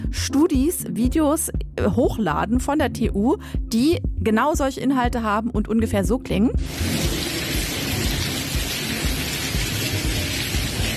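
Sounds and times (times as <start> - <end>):
speech: 0.2 - 7.3
rainwater pouring down inside a building: 6.6 - 10.9.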